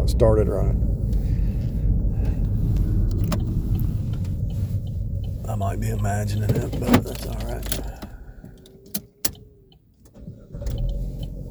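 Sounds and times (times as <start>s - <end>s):
car engine idling with noisy lifters: 0.0s - 11.4s
speech: 0.1s - 0.9s, 5.5s - 8.0s.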